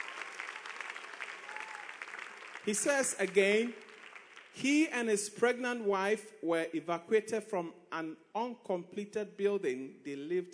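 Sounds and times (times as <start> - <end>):
audience clapping: 0.0 - 4.9
speech: 2.6 - 3.8, 4.6 - 10.5.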